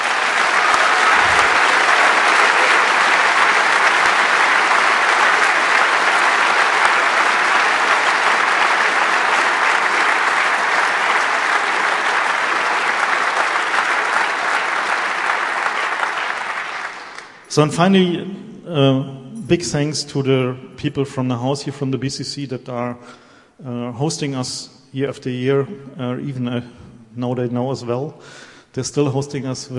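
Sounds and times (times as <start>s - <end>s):
audience applause: 0.0s - 18.1s
speech: 17.6s - 29.7s.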